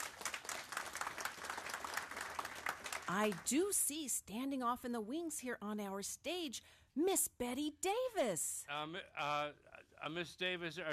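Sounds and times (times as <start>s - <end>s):
audience applause: 0.0s - 3.5s
speech: 3.1s - 10.9s.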